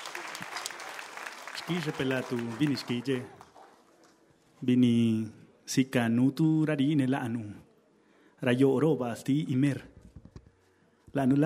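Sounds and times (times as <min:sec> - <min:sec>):
audience applause: 0:00.0 - 0:04.2
speech: 0:01.7 - 0:03.4, 0:04.6 - 0:07.7, 0:08.4 - 0:09.9, 0:11.1 - 0:11.4.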